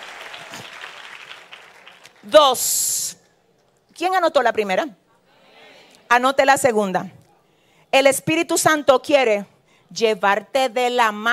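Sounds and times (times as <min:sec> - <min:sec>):
audience applause: 0:00.0 - 0:02.2
speech: 0:02.2 - 0:03.1, 0:04.0 - 0:05.0, 0:06.1 - 0:07.2, 0:07.9 - 0:11.3.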